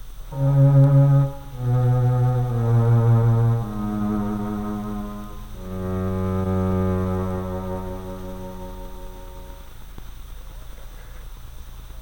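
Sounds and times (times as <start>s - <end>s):
electronic instrument playing the lowest string quartet part in a cello-like timbre: 0.3s - 9.7s.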